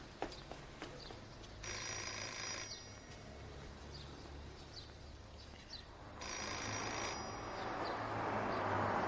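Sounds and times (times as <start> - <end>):
telephone ringing: 1.6 - 3.6, 6.2 - 8.6.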